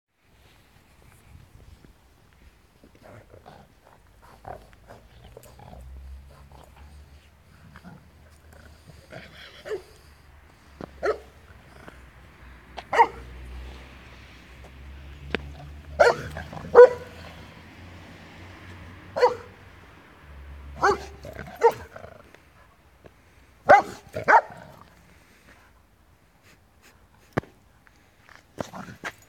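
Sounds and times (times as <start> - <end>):
dog barking: 11.0 - 11.4, 12.9 - 13.4, 16.0 - 17.2, 19.2 - 19.6, 20.7 - 21.9, 23.7 - 24.6.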